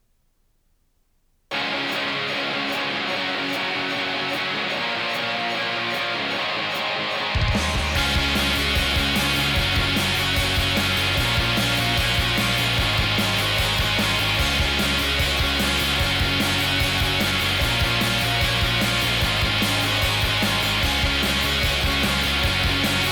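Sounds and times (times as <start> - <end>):
rock music from gold-plated tape: 1.5 - 23.1.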